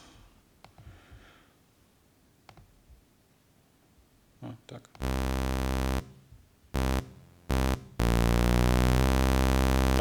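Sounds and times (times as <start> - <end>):
sawtooth synth tone with interpolated gliding pitch: 5.0 - 6.1, 6.8 - 10.0.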